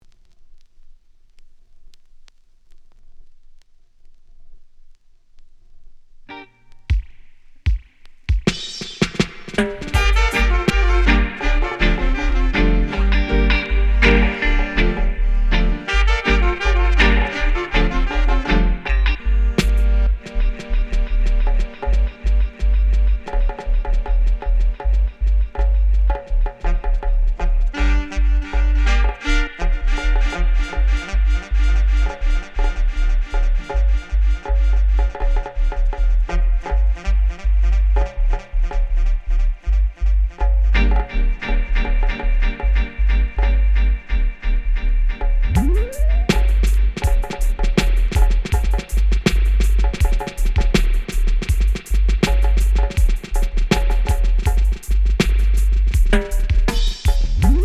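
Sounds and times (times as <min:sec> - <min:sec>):
Zulu dub music: 0:06.9 - 0:57.6.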